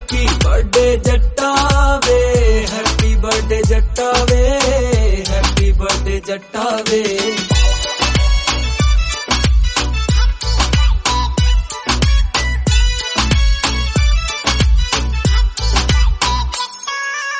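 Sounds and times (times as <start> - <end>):
instrumental background music: 0.0 - 17.3.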